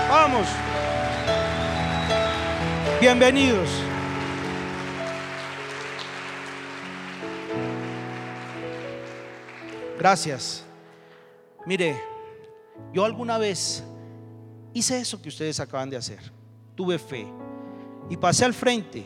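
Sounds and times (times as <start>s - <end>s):
audience applause: 0.0s - 10.2s
speech: 0.4s - 0.8s, 3.0s - 3.8s, 10.0s - 10.7s, 11.6s - 12.1s, 12.8s - 13.9s, 14.8s - 19.0s.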